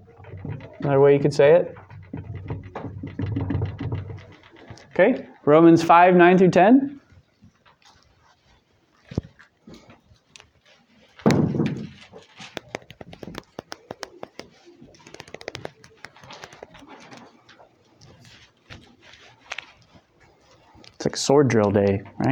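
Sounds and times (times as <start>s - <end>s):
speech: 0.8s - 1.8s, 5.0s - 7.0s, 21.3s - 22.2s
flipping pages of Bibles: 10.3s - 21.0s.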